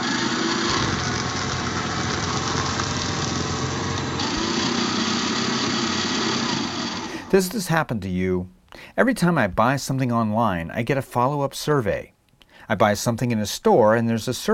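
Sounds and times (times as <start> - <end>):
paper shredder shredding paper: 0.0 - 7.5
speech: 7.3 - 12.1, 12.7 - 14.5.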